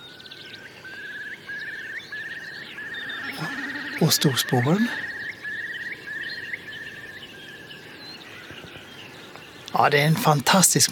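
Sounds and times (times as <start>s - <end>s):
common snipe call: 0.9s - 8.7s
speech: 4.0s - 5.1s, 9.8s - 10.8s.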